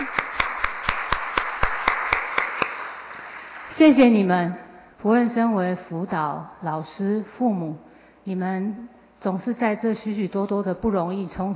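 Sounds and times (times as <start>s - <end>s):
audience clapping hands: 0.0s - 3.7s
faint hiss: 0.0s - 11.5s
speech: 3.8s - 11.5s.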